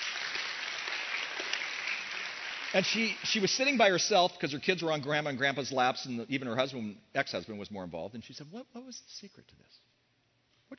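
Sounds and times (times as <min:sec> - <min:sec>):
audience clapping: 0:00.0 - 0:04.4
speech: 0:02.7 - 0:09.9.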